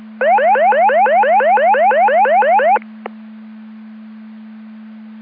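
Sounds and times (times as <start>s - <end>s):
siren: 0.2s - 2.8s.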